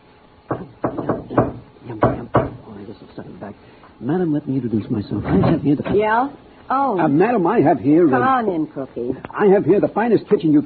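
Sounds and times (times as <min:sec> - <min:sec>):
rhythmic knocking on a door: 0:00.5 - 0:02.7
speech: 0:03.2 - 0:10.6.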